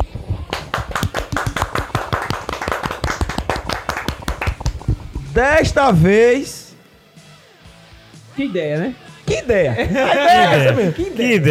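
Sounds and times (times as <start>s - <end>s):
hands clapping: 0.4s - 5.0s
speech: 5.4s - 6.6s, 8.4s - 11.4s
laughter: 9.3s - 11.4s.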